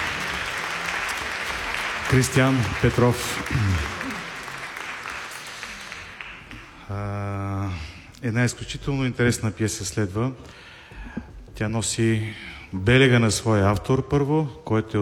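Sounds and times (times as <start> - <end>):
audience applause: 0.0 - 6.9
speech: 2.1 - 4.3, 6.9 - 10.7, 11.6 - 15.0.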